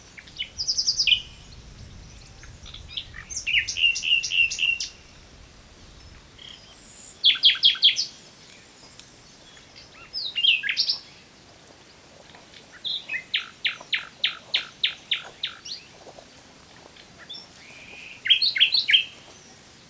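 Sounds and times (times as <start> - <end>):
common nightingale singing: 0.0 - 11.1, 12.8 - 15.9, 17.2 - 19.5.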